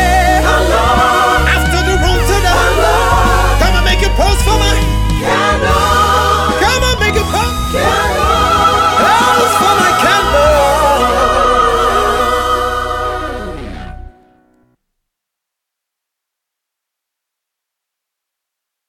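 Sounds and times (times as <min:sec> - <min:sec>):
oriental choir singing a cover: 0:00.0 - 0:14.1.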